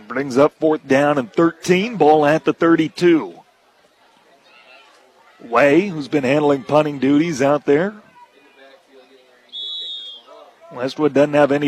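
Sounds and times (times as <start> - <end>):
speech: 0.1 - 3.4, 5.4 - 8.0, 10.7 - 11.6
referee whistle: 9.5 - 10.4.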